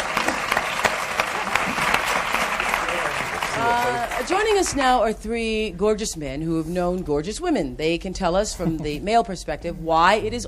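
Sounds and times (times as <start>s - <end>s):
television talk show studio audience applause: 0.0s - 4.8s
speech: 4.2s - 10.4s.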